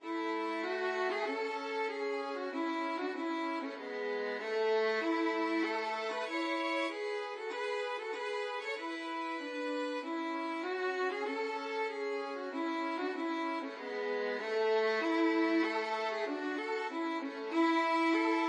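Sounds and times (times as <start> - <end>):
violin duet: 0.0 - 18.4.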